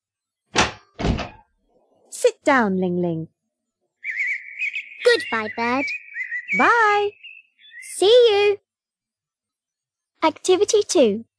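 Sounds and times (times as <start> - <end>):
door being opened with heavy dull thuds: 0.5 - 1.5
speech: 2.2 - 3.4, 5.2 - 7.2, 8.0 - 8.6, 10.2 - 11.3.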